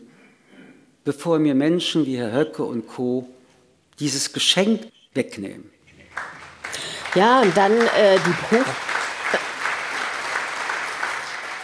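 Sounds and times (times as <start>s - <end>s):
speech: 1.0s - 3.4s, 4.0s - 5.8s, 7.1s - 8.9s
audience applause: 5.9s - 11.6s.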